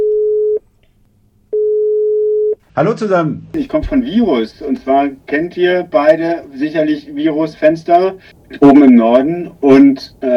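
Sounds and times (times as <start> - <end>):
telephone call tones from a car in a traffic jam: 1.6 - 2.6
speech: 2.8 - 10.3.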